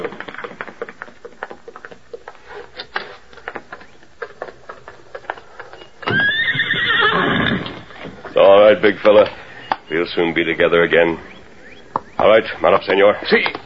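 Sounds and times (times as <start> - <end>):
horse hooves clopping: 0.0 - 13.6
horse whinnying: 5.6 - 8.6
speech: 8.8 - 11.3, 12.2 - 13.5.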